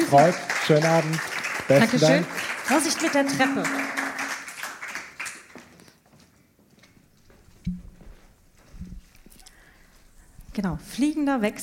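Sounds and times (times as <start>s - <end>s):
audience applause: 0.0s - 5.8s
speech: 0.1s - 4.0s, 10.6s - 11.6s.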